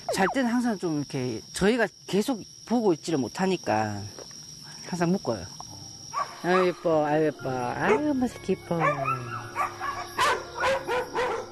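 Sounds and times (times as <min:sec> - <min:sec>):
speech: 0:00.2 - 0:04.2, 0:04.9 - 0:05.6, 0:06.4 - 0:09.4
dogs barking outdoors at night: 0:06.1 - 0:06.8, 0:07.8 - 0:08.2, 0:08.8 - 0:11.5.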